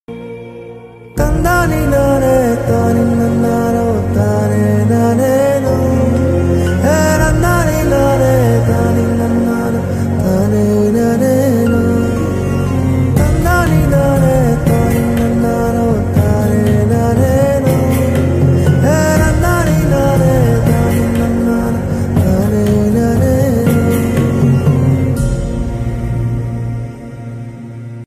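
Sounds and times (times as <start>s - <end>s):
Tamil BGM ringtone: 0.2s - 28.0s.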